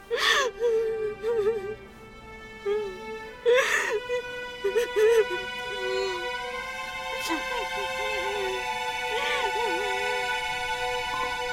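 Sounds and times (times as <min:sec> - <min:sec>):
mother crying: 0:00.0 - 0:01.8, 0:02.6 - 0:11.4.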